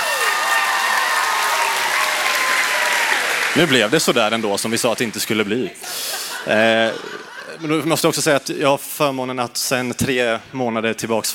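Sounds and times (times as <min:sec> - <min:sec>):
audience applause: 0:00.0 - 0:05.8
speech: 0:03.6 - 0:11.3
laughter: 0:05.6 - 0:08.2.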